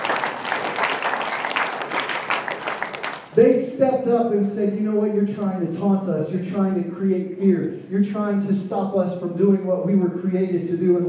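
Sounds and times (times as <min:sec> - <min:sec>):
audience clapping: 0:00.0 - 0:03.4
speech: 0:03.4 - 0:11.0.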